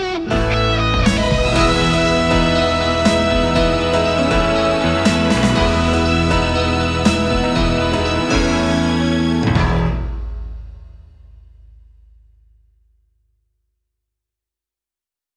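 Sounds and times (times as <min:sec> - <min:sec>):
exit music: 0:00.0 - 0:12.2.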